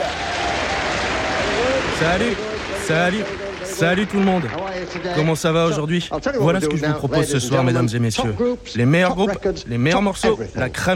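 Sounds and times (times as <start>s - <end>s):
studio audience applause: 0.0s - 5.8s
speech: 2.0s - 10.9s.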